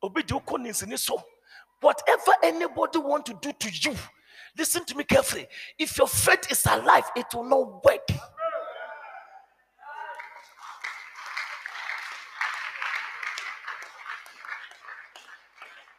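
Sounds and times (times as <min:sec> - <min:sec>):
speech: 0:00.0 - 0:08.3
audience clapping: 0:10.1 - 0:15.9.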